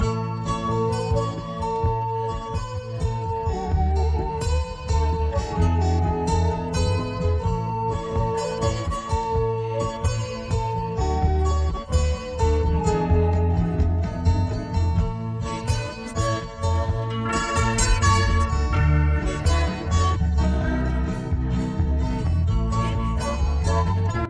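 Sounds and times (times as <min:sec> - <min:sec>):
guitar: 0:00.0 - 0:24.2.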